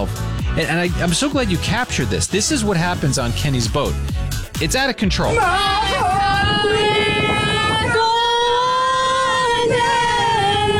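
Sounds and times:
speech: 0.0s - 7.0s
group of people singing loudly on a boat: 5.3s - 10.7s.

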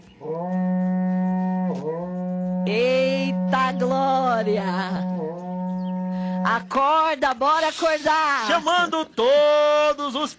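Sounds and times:
berrante cattle horn being blown: 0.4s - 6.8s
speech: 6.5s - 10.3s.

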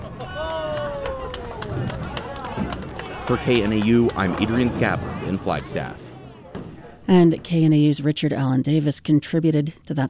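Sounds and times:
family applauding a spare at bowling alley: 0.0s - 6.1s
speech: 3.3s - 6.0s, 7.1s - 10.0s.

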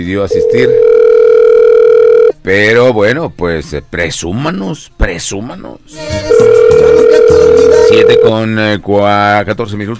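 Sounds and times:
speech: 0.0s - 1.1s, 2.4s - 9.9s
ringing tone of an outgoing phone call: 0.3s - 2.4s, 6.3s - 8.4s.

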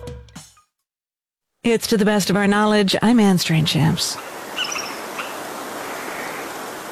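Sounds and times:
speech: 1.7s - 4.3s
bird chirping: 4.1s - 5.4s.

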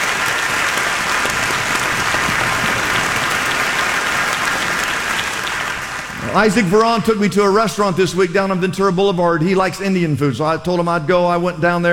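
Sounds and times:
church congregation applause during a clap offering: 0.0s - 8.0s
speech: 6.3s - 11.9s.

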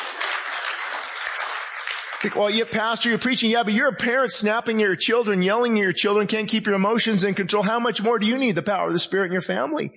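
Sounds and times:
crowd clapping: 0.0s - 3.6s
speech: 2.2s - 9.9s.

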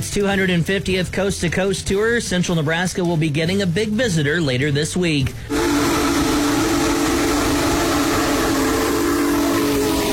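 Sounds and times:
speech: 0.0s - 5.9s
steam locomotive whistle: 5.5s - 10.1s.

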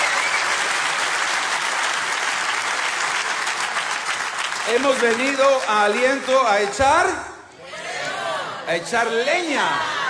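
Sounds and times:
audience applause: 0.0s - 6.9s
speech: 4.7s - 7.3s, 8.7s - 10.0s.

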